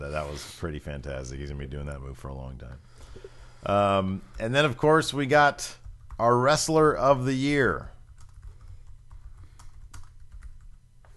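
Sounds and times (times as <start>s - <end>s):
speech: 0.0s - 7.9s
fingers typing on a computer keyboard: 5.8s - 6.2s, 7.8s - 10.8s.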